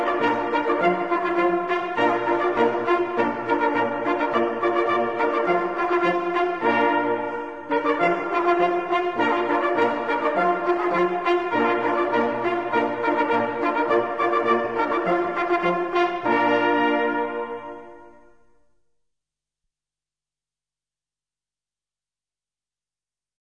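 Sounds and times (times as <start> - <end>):
hunting horns playing a march: 0.0 - 18.4.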